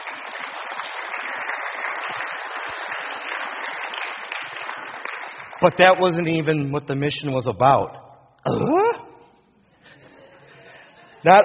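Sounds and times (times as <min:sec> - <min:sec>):
crowd applause: 0:00.0 - 0:05.7
speech: 0:05.6 - 0:08.8, 0:11.2 - 0:11.4.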